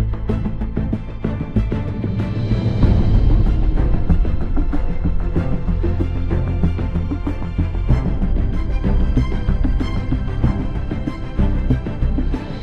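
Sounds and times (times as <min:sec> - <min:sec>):
idle ambient music: 0:00.0 - 0:12.6.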